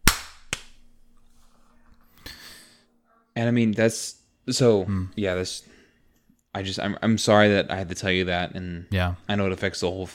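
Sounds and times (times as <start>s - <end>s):
hand clap marking a recording restart: 0.0s - 0.8s
speech: 3.4s - 5.8s, 6.6s - 10.1s.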